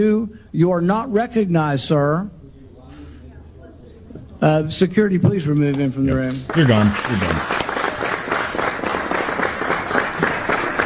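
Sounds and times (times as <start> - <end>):
speech: 0.0 - 2.4, 4.4 - 7.5
audience applause in a hearing room: 6.1 - 10.8.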